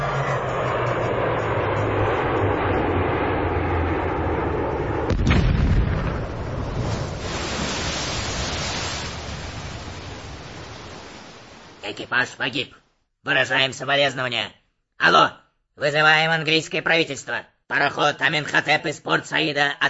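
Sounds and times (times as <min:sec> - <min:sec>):
gunboat engine drone: 0:00.0 - 0:05.2
torpedo blast on a gunboat: 0:04.8 - 0:11.9
speech: 0:11.9 - 0:19.8.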